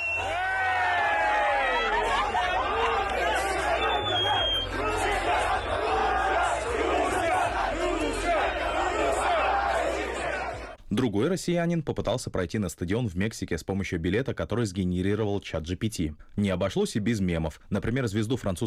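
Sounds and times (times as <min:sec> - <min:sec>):
fan zone crowd chanting: 0:00.0 - 0:10.8
speech: 0:11.0 - 0:18.6.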